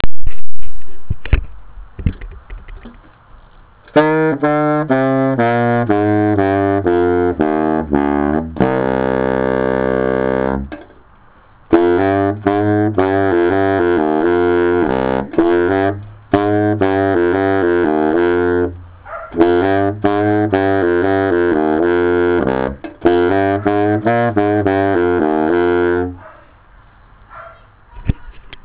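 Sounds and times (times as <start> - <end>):
saxophone playing low A: 3.9 - 10.9, 11.7 - 26.2.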